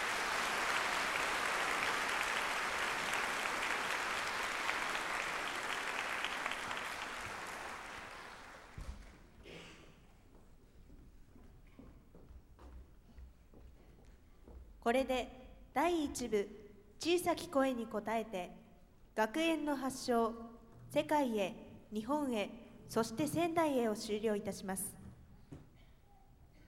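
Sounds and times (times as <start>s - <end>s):
audience applause: 0.0s - 9.2s
speech: 14.9s - 18.6s, 19.2s - 25.0s.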